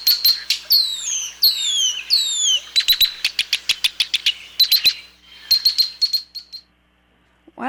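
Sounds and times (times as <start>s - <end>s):
male marsh bird flight song: 0.0s - 6.6s.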